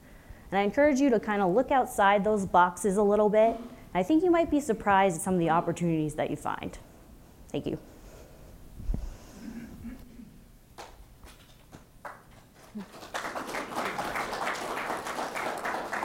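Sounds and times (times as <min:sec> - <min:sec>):
speech: 0:00.5 - 0:06.9, 0:07.5 - 0:07.9
audience clapping: 0:10.8 - 0:16.0.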